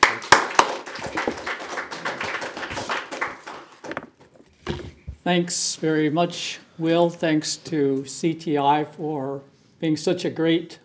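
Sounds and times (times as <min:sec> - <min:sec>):
audience applause welcoming a panel: 0:00.0 - 0:04.1
speech: 0:05.3 - 0:10.8.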